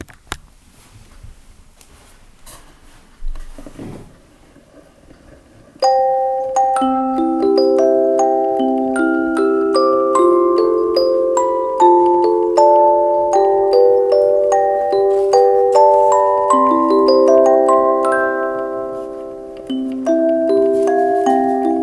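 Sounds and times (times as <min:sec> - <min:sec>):
music box melody: 0:05.8 - 0:21.8.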